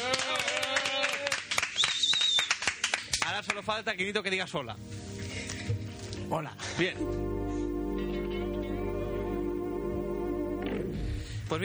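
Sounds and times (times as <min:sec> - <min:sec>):
audience clapping: 0:00.0 - 0:03.7
speech: 0:03.6 - 0:05.0, 0:06.3 - 0:07.4
sustained high tonal sound: 0:07.0 - 0:11.3.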